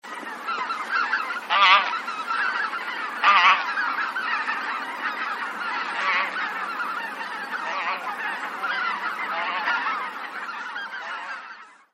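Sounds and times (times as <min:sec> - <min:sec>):
bean geese honking: 0:00.0 - 0:11.9.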